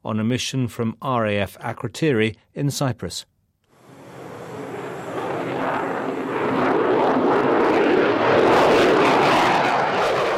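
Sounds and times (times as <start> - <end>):
speech: 0.0 - 3.3
Typhoon fighter jet roaring through the night sky above RAF Akrotiri in Cyprus: 3.7 - 10.3.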